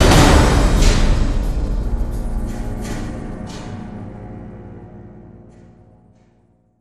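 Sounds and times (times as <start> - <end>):
stinger drum hit: 0.0 - 4.3.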